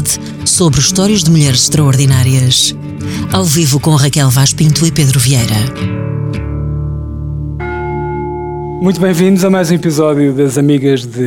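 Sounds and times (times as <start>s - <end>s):
speech: 0.0s - 6.4s, 8.8s - 11.2s
gong chime: 7.6s - 10.8s.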